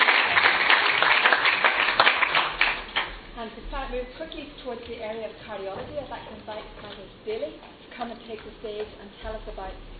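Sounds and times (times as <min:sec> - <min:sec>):
audience applause: 0:00.0 - 0:03.2
speech: 0:03.9 - 0:09.9.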